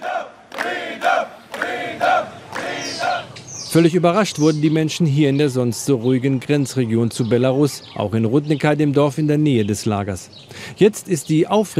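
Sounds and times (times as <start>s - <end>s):
crowd shouting in unison: 0.0s - 3.4s
speech: 3.7s - 11.7s.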